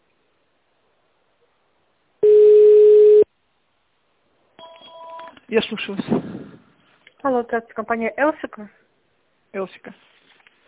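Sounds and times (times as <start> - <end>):
telephone line tone in touch-tone mode: 2.2 - 3.3
speech: 5.5 - 6.6, 7.2 - 8.8, 9.5 - 10.1.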